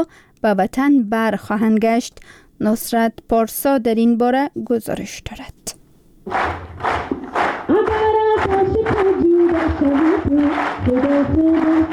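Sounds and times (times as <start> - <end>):
speech: 0.0 - 6.6, 9.6 - 11.9
rhythmic group clapping: 6.3 - 11.9.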